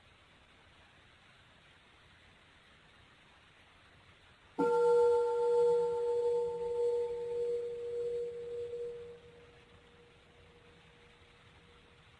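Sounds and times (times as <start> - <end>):
meditation bell ringing: 4.6 - 9.5.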